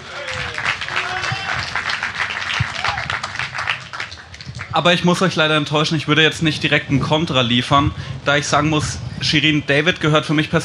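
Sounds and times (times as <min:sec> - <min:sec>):
audience applause: 0:00.0 - 0:04.7
speech: 0:04.8 - 0:10.6.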